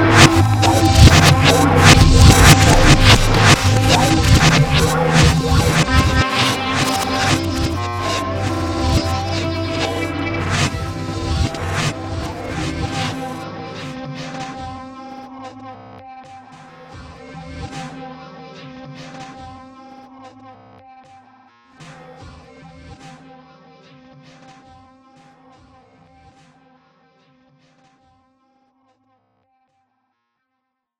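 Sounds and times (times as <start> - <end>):
dub music: 0.0 - 15.3.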